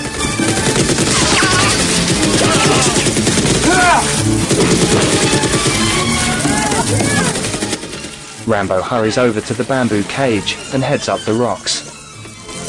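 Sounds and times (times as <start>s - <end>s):
machine gun fire in a Rambo film scene: 0.0s - 8.5s
speech: 8.5s - 11.9s.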